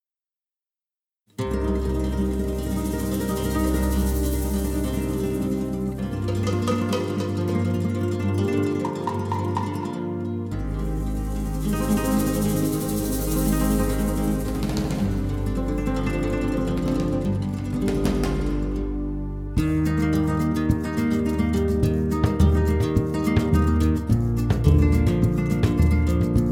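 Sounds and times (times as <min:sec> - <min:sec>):
Spanish guitar rumba: 0:01.4 - 0:26.5.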